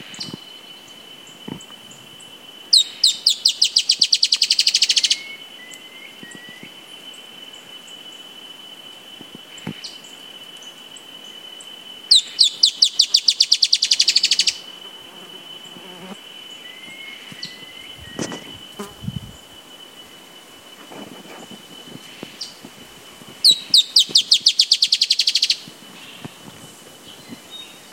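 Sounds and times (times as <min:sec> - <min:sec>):
Drymophila malura calling: 0:02.7 - 0:06.7, 0:12.1 - 0:15.8, 0:16.6 - 0:22.7, 0:23.4 - 0:26.4.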